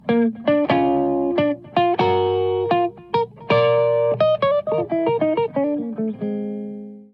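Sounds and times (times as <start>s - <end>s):
musical riff: 0.0s - 7.0s.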